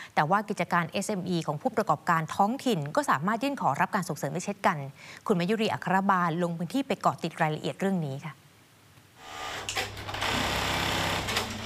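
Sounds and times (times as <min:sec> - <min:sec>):
speech: 0:00.2 - 0:08.4
sewing machine stitching heat- and spark-protective work suits in a factory: 0:09.4 - 0:11.6.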